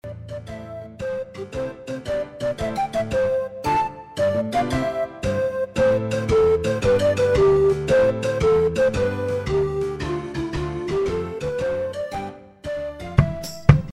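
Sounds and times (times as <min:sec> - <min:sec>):
pop MIDI music: 0:00.0 - 0:13.9.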